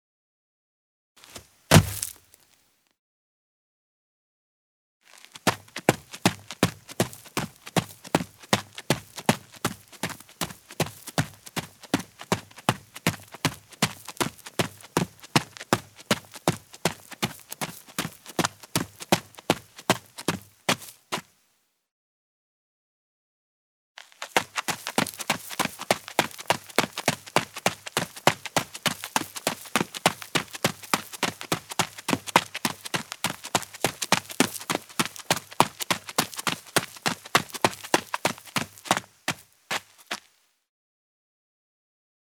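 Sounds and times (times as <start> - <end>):
footsteps: 1.2 - 2.5, 5.1 - 21.3, 24.0 - 40.3.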